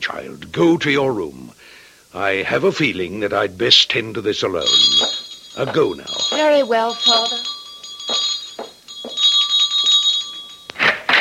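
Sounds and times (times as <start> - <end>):
speech: 0.0 - 7.5
doorbell ringing: 4.6 - 11.1.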